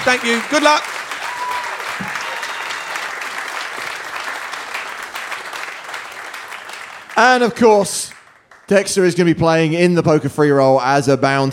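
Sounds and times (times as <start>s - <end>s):
speech: 0.0s - 1.0s, 7.2s - 11.5s
audience applause: 0.0s - 8.9s.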